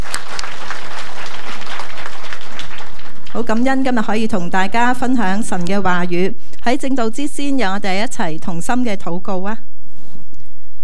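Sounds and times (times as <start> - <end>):
crowd applause: 0.0 - 3.8
speech: 3.4 - 9.7.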